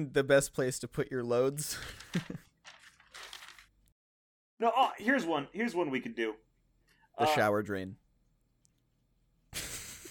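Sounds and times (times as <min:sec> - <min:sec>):
speech: 0:00.0 - 0:02.4, 0:04.6 - 0:06.5, 0:07.2 - 0:08.0
notebook pages flipping: 0:01.8 - 0:03.9.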